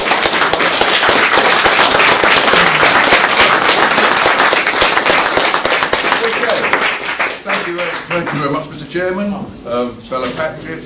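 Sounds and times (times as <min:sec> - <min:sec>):
crowd giving a warm round of applause: 0:00.0 - 0:08.5
speech: 0:08.4 - 0:10.8.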